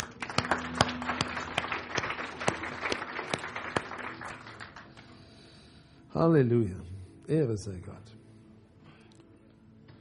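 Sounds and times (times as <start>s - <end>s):
audience applause: 0.0s - 5.1s
speech: 6.2s - 8.1s.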